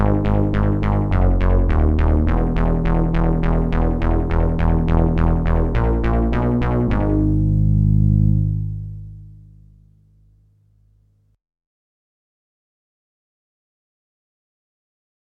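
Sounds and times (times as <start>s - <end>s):
Dreadbox Erebus reissue synthesizer: 0.0s - 10.0s.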